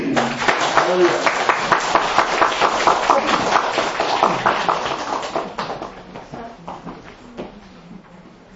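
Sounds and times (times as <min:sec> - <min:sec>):
audience applause in church: 0:00.0 - 0:06.2
speech: 0:00.9 - 0:01.3.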